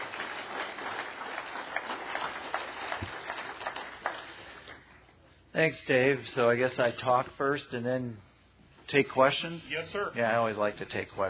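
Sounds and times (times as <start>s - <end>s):
audience applause: 0.0s - 4.8s
speech: 5.6s - 8.3s, 8.9s - 11.2s.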